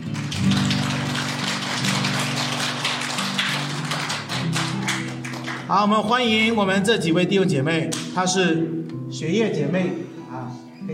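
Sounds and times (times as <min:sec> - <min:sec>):
audience applause: 0:00.0 - 0:05.7
speech: 0:05.7 - 0:10.9.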